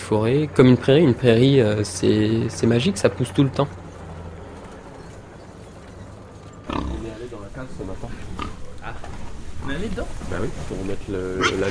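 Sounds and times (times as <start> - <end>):
speech: 0.1 - 3.8, 10.0 - 11.6
pig grunting: 6.6 - 7.3, 8.2 - 8.8, 11.3 - 11.6.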